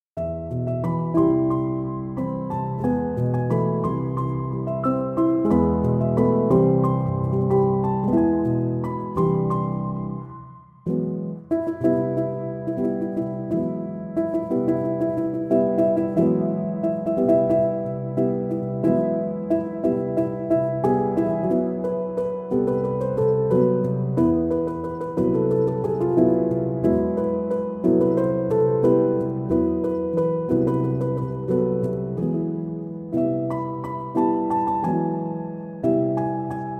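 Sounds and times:
piano instrumental: 0.2 - 36.7.

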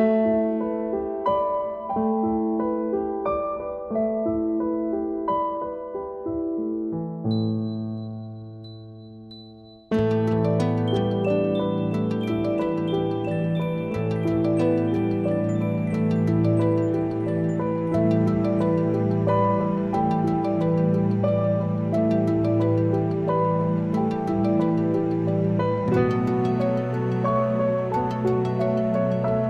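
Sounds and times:
piano instrumental music: 0.0 - 29.4.

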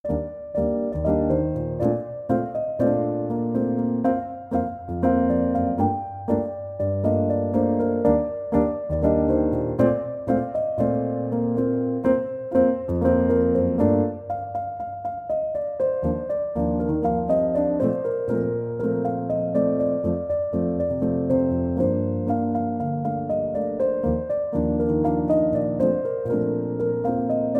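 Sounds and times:
piano instrumental: 0.0 - 27.5.

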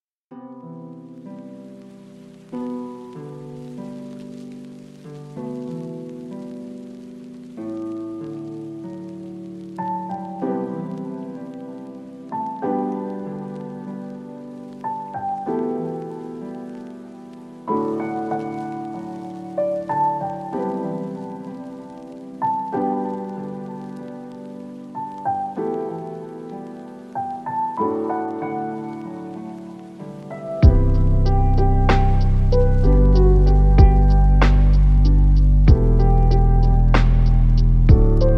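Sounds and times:
instrumental lofi music: 0.3 - 38.3.

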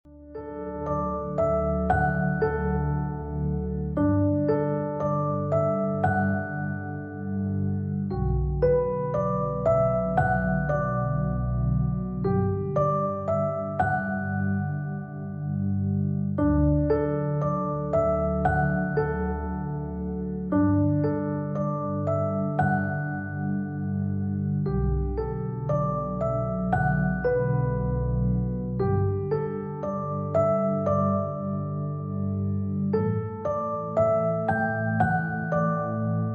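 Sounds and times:
relaxing piano: 0.1 - 36.3.

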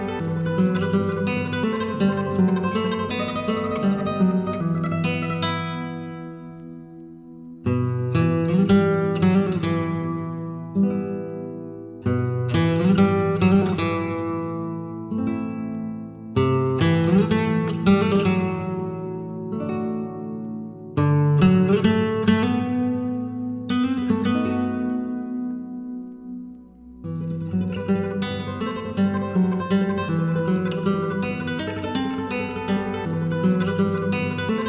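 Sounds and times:
chill guitar music: 0.0 - 34.6.

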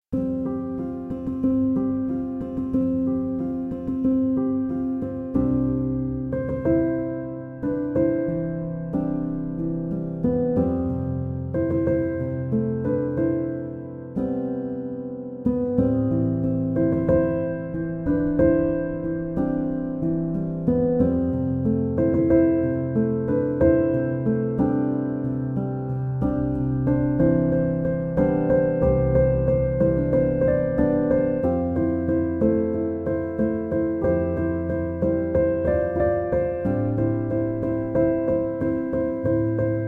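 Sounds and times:
piano instrumental: 0.0 - 39.8.

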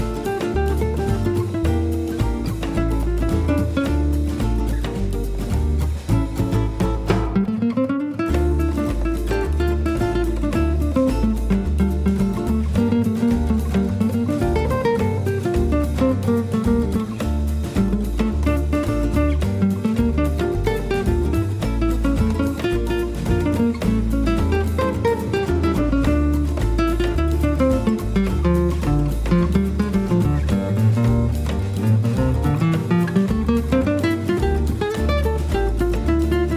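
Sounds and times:
bossa nova samba music: 0.0 - 36.5.

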